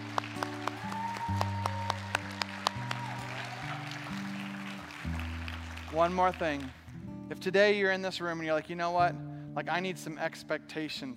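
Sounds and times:
audience applause: 0:00.0 - 0:06.9
speech: 0:06.0 - 0:11.1.

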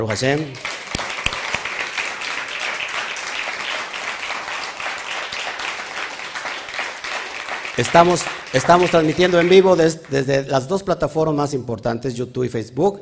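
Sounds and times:
speech: 0:00.0 - 0:00.8, 0:07.8 - 0:13.0
audience applause: 0:00.0 - 0:10.4.

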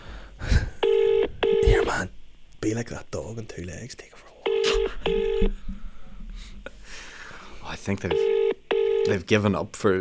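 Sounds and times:
telephone dialing tones: 0:00.8 - 0:01.8, 0:04.5 - 0:05.5, 0:08.1 - 0:09.1
speech: 0:02.6 - 0:05.7, 0:07.7 - 0:08.3, 0:09.1 - 0:09.9.

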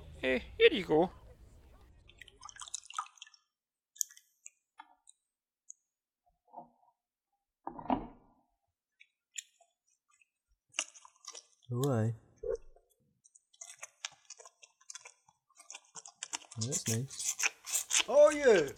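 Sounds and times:
speech: 0:00.2 - 0:01.2, 0:11.7 - 0:12.2, 0:16.6 - 0:17.4, 0:18.1 - 0:18.7
water dripping: 0:01.8 - 0:05.8
water splashing as horns are washed by hand: 0:01.9 - 0:04.2.

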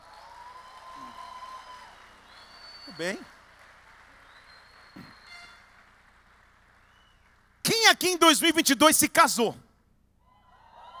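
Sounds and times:
audience applause: 0:00.0 - 0:08.6
speech: 0:02.9 - 0:03.4, 0:07.9 - 0:09.6.

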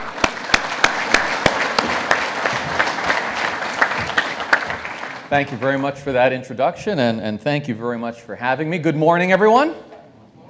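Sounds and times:
audience applause: 0:00.0 - 0:05.8
speech: 0:05.3 - 0:09.9.

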